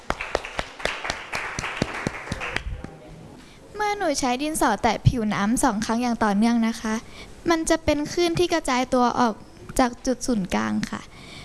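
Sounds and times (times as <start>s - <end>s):
group of people clapping in a classroom: 0.0s - 3.0s
speech: 3.9s - 11.1s.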